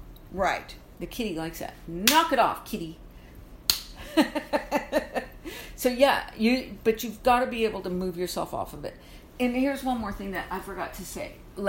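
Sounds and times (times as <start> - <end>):
speech: 0.3 - 3.0, 5.8 - 11.6
hand claps: 3.7 - 4.0.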